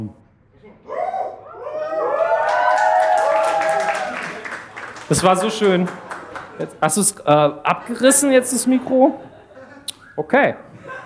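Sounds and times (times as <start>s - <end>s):
speech: 0.0s - 0.2s, 5.1s - 6.0s, 6.6s - 9.3s, 10.2s - 10.9s
whoops and cheering voices: 0.9s - 4.8s
audience applause: 1.9s - 8.8s
laughter: 2.8s - 11.0s.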